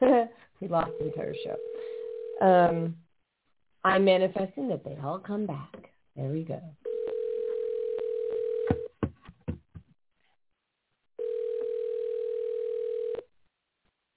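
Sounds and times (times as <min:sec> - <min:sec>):
speech: 0:00.6 - 0:01.8, 0:02.4 - 0:03.0, 0:03.8 - 0:06.8
outgoing phone call ringing tone: 0:00.8 - 0:02.5, 0:06.9 - 0:08.9, 0:11.2 - 0:13.3.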